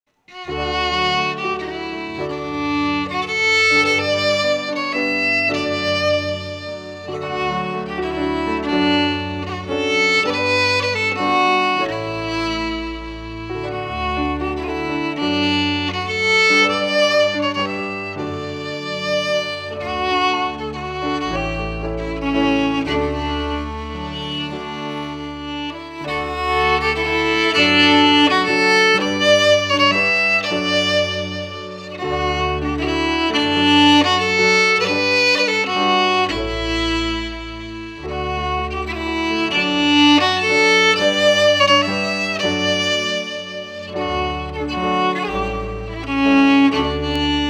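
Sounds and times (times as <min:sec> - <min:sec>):
fiddle and piano lullaby: 0:00.2 - 0:47.4.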